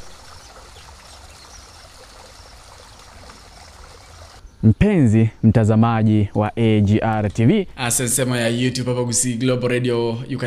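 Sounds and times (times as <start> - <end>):
water flowing from a natural spring: 0.0 - 4.4
speech: 4.6 - 10.4.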